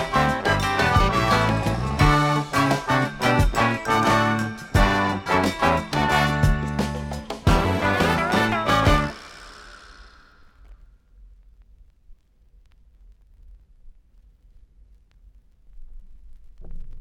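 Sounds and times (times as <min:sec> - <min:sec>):
jig tune: 0:00.0 - 0:09.3.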